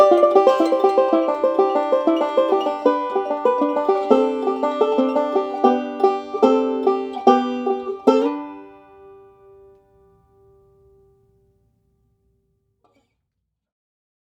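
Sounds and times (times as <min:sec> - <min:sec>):
walnut resonator bluegrass banjos: 0:00.0 - 0:10.2.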